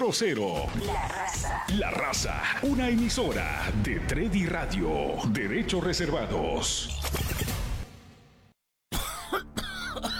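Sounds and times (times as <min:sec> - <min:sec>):
speech: 0:00.0 - 0:07.4
harsh raspy coughing: 0:08.9 - 0:10.1.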